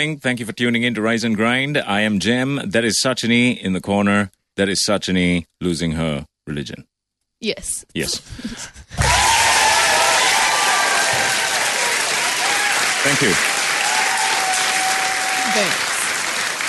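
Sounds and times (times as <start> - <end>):
speech: 0.0 - 9.1, 13.0 - 13.5, 15.6 - 15.9
fake applause sound effect: 9.0 - 16.6.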